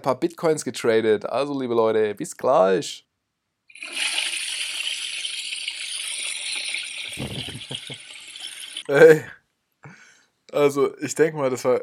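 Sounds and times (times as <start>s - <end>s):
speech: 0.0s - 3.1s, 3.8s - 4.4s, 8.9s - 9.4s, 10.5s - 11.8s
toilet flushing: 3.7s - 8.8s
laughter: 7.2s - 8.0s.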